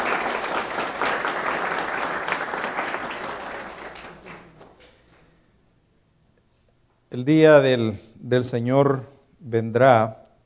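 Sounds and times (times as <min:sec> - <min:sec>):
audience applause: 0:00.0 - 0:04.8
speech: 0:07.2 - 0:10.2.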